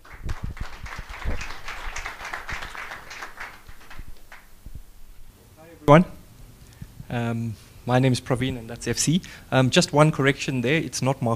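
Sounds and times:
audience applause: 0.0 - 4.5
speech: 5.9 - 6.2, 7.1 - 11.3.

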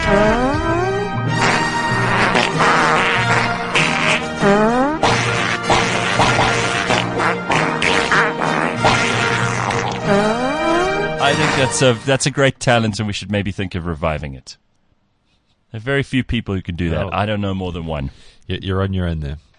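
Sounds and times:
tune played with fart-like blasts: 0.0 - 12.0
steady low musical backing: 0.0 - 12.7
speech: 0.1 - 0.6, 11.3 - 14.6, 15.7 - 19.5.

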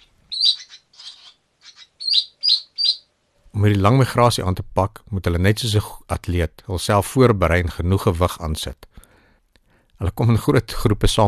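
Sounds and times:
European barn swallow calling in high thin chirps and twitters: 0.0 - 3.1
speech: 3.6 - 8.9, 10.0 - 11.2.

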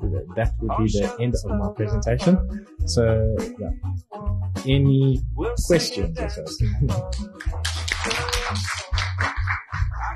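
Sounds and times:
speech: 0.2 - 9.3
audience applause: 7.4 - 10.1.

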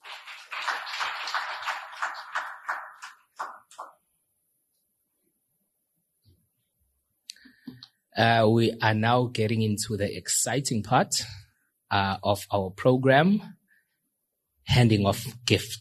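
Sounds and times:
audience applause: 0.0 - 4.0
speech: 8.2 - 13.6, 14.7 - 15.7.

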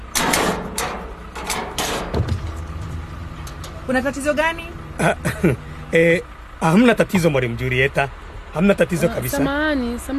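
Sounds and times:
door being opened for a teacher: 0.2 - 5.2
speech: 3.9 - 10.1
laughter: 5.0 - 5.7.

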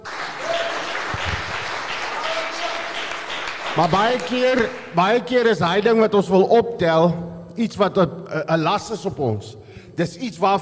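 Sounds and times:
applause: 0.0 - 5.4
speech: 3.8 - 10.5.

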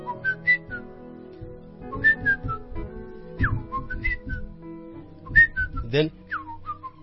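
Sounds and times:
person whistling imitation of birdsong melody: 0.0 - 0.9, 1.8 - 2.7, 3.4 - 4.6, 5.2 - 7.0
speech: 5.9 - 6.2.

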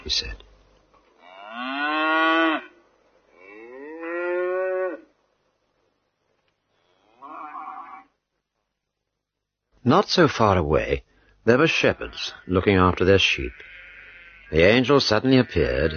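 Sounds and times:
speech: 0.1 - 0.5, 9.8 - 13.7, 14.5 - 15.9
cattle mooing: 1.2 - 5.1, 7.0 - 8.1, 13.5 - 14.7.

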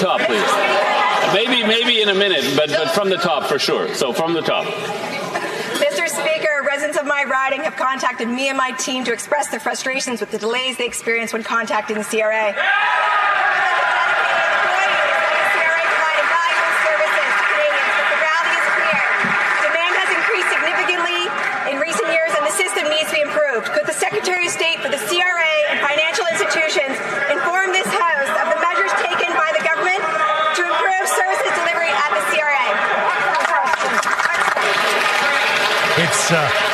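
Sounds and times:
crowd shouting and cheering in parliament: 0.0 - 7.1, 12.2 - 36.7
speech: 1.3 - 5.2, 6.6 - 13.3
applause in parliament: 15.2 - 21.6, 33.3 - 36.7.

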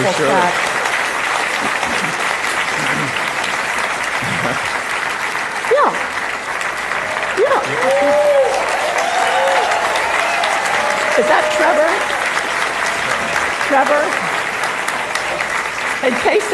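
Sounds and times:
speech: 0.0 - 0.7, 4.4 - 4.8, 7.5 - 8.5, 11.2 - 12.2, 13.7 - 14.3, 16.0 - 16.5
audience applause: 0.0 - 16.5.

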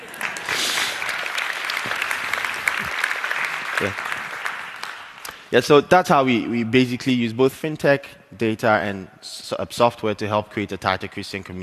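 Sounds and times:
audience applause: 0.0 - 5.5
speech: 3.8 - 4.1, 5.5 - 11.6.

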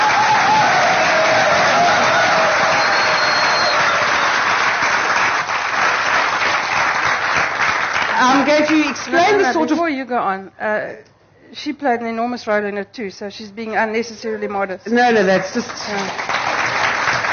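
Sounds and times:
crowd applauding: 0.0 - 9.5, 15.4 - 17.3
speech: 9.9 - 16.4.

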